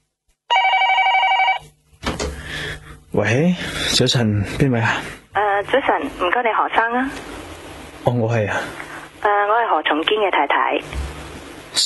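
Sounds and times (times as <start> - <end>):
telephone bell ringing: 0.5 - 1.7
speech: 3.1 - 11.1.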